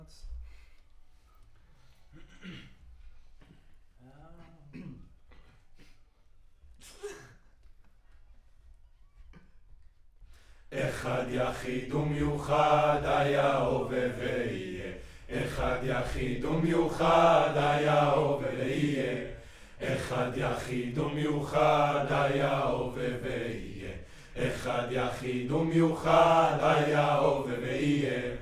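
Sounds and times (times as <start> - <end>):
choir singing: 10.7 - 28.4.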